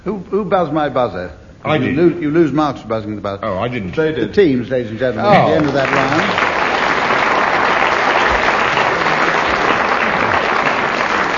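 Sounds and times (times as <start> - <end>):
speech: 0.0 - 6.5
audience applause: 5.3 - 11.3.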